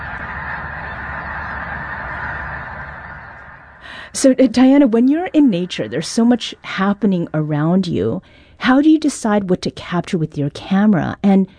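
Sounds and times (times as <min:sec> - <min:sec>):
flock of snow geese honking: 0:00.0 - 0:08.3
speech: 0:04.1 - 0:11.5.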